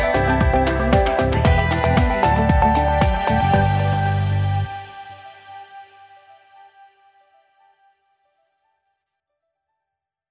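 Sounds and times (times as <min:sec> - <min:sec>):
corporate logo jingle: 0:00.0 - 0:05.4.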